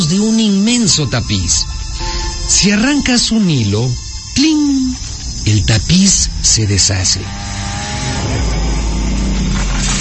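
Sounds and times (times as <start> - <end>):
speech: 0.0 - 1.8, 2.5 - 8.6
chainsaw cutting trees: 6.1 - 9.9.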